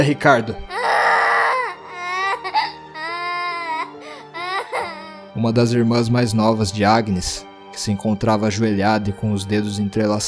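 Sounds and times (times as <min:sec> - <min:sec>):
speech: 0:00.0 - 0:00.9, 0:05.4 - 0:10.2
young child crying: 0:00.7 - 0:05.3.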